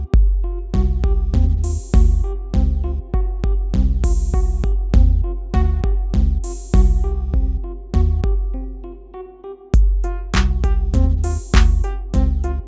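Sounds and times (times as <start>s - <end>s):
boom bap beat: 0.1s - 8.4s, 9.7s - 12.6s.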